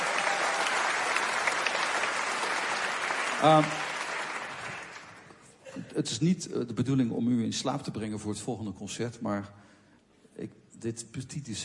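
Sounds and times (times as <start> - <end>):
audience applause: 0.0 - 5.3
speech: 3.4 - 3.8, 6.0 - 9.7, 10.4 - 11.6.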